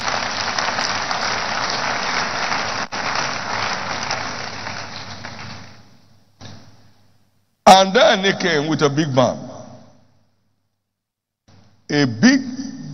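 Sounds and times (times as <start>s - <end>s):
audience applause: 0.0s - 5.9s
speech: 7.8s - 9.5s, 12.0s - 12.5s.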